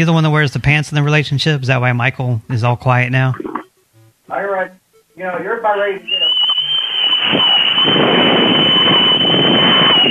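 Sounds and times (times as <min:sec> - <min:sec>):
speech: 0:00.0 - 0:03.5, 0:04.3 - 0:06.3, 0:07.3 - 0:08.4
loud shrill whistle blast over a phone call: 0:06.0 - 0:10.0.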